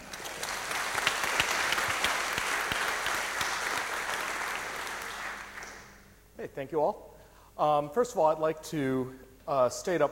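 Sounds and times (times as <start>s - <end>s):
audience applause: 0.0s - 6.0s
speech: 6.6s - 10.0s.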